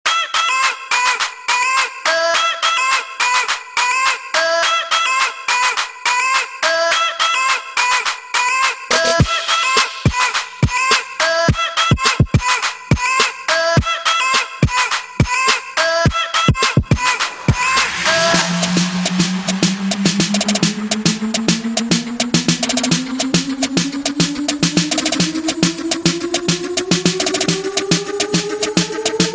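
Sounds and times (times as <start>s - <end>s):
remix music: 0.1s - 29.3s.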